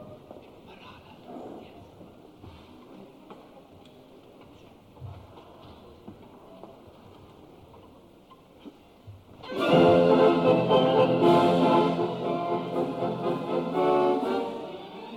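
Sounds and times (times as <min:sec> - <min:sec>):
orchestra: 0:09.4 - 0:15.1
symphonic choir: 0:09.5 - 0:15.1.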